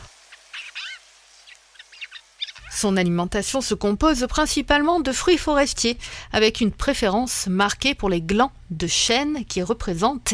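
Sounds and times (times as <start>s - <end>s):
faint hiss: 0.0s - 4.3s
Eurasian jay chirping and whistling: 0.3s - 2.8s
speech: 2.8s - 10.3s.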